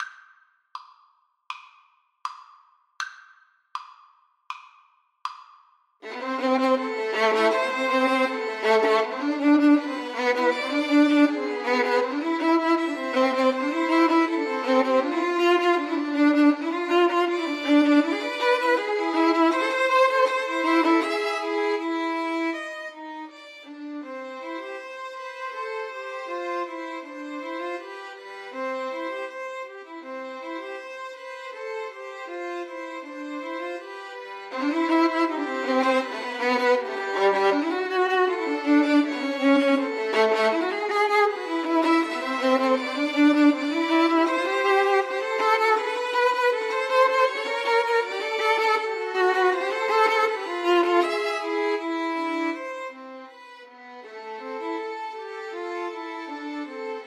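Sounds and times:
violin trio playing: 6.0 - 57.0.

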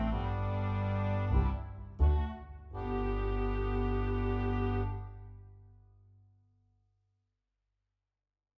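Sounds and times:
oboe playing a nursery rhyme melody: 0.0 - 5.4.

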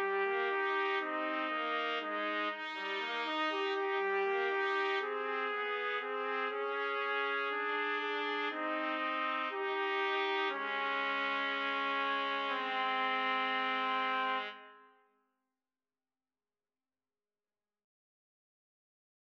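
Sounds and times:
trumpet trio playing a romance: 0.0 - 14.6.

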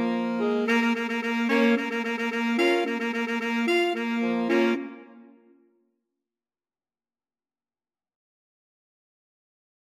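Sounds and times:
alto sax quartet: 0.0 - 5.2.

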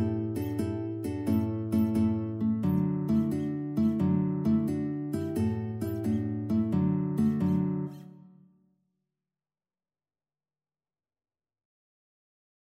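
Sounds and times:
guitar duet: 0.0 - 8.4.

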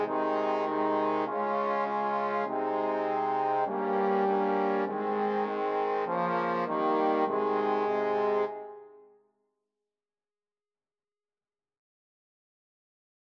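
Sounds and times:
trombone quartet playing a nursery rhyme: 0.0 - 8.8.

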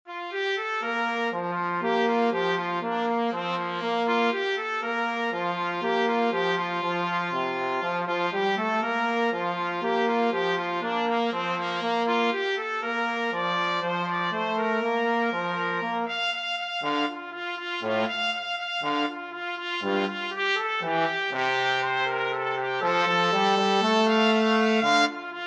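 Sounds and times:
trumpet and trombone duet: 0.3 - 25.4.

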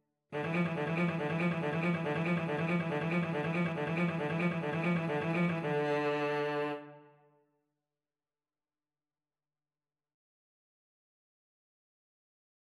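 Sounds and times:
cello: 0.4 - 7.3
violin: 0.4 - 7.3.

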